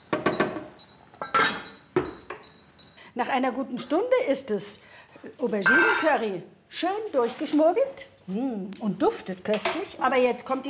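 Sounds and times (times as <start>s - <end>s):
metal lid clattering onto a cooking pot: 1.2s - 1.7s
speech: 3.2s - 10.6s.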